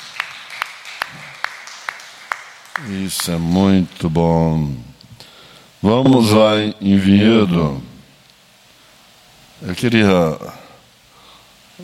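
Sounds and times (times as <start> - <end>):
church congregation clapping during a service: 0.0 - 4.2
speech: 2.8 - 4.9, 5.8 - 7.9, 9.6 - 10.6.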